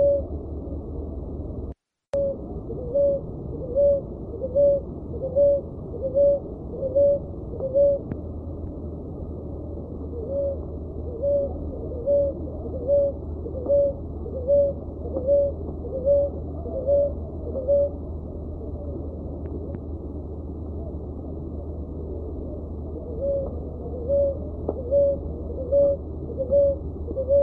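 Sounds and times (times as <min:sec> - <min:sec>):
dove uttering short mellow hoot-like notes: 0:00.0 - 0:00.4, 0:02.2 - 0:08.2, 0:09.5 - 0:19.2, 0:22.0 - 0:27.4.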